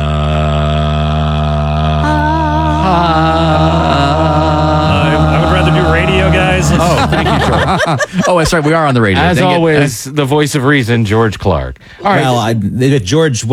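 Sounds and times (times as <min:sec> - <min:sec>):
voice imitating a constant droning tone: 0:00.0 - 0:08.0
laughter: 0:04.9 - 0:10.0
speech: 0:06.6 - 0:13.5.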